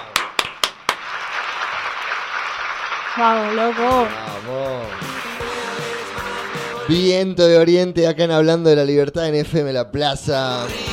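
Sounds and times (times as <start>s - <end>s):
applause: 0.0s - 7.0s
loud claps: 0.0s - 7.0s
speech: 3.2s - 5.5s, 6.9s - 10.9s.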